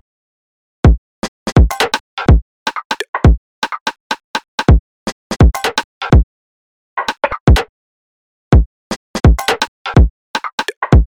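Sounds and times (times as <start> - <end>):
drums recorded from inside: 0.8 - 4.8, 5.3 - 6.2, 8.5 - 11.1.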